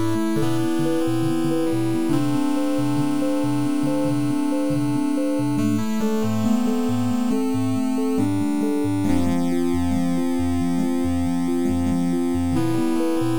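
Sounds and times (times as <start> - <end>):
slow 8-bit music: 0.0 - 13.3.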